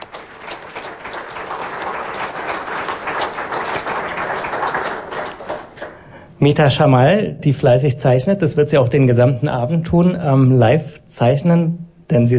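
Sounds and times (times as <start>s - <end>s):
audience applause: 0.0s - 6.0s
speech: 6.4s - 12.3s.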